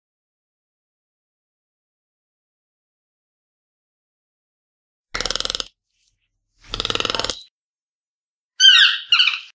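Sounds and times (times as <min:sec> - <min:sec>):
toucan croaks: 0:05.2 - 0:05.7, 0:06.6 - 0:07.5.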